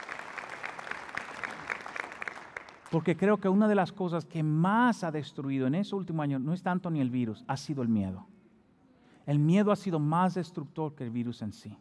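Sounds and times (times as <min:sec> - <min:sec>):
audience applause: 0:00.0 - 0:03.0
speech: 0:02.9 - 0:08.3, 0:09.3 - 0:11.7.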